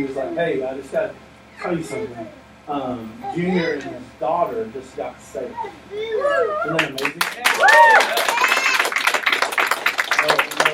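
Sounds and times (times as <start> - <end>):
speech: 0.0 - 8.5, 10.2 - 10.7
golf clap: 6.8 - 10.7.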